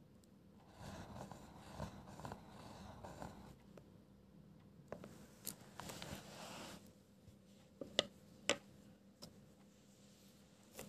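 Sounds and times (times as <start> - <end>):
low steady hum: 0.0 - 10.8
pencil scribbling: 0.6 - 3.6.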